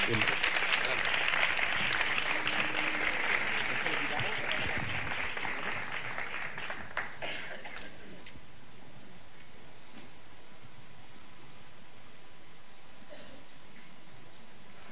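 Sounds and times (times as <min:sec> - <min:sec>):
audience applause: 0:00.0 - 0:07.9.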